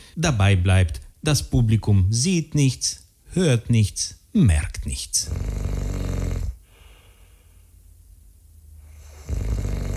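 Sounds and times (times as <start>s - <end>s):
speech: 0.2s - 5.6s
person snoring: 5.2s - 7.0s, 8.9s - 9.9s.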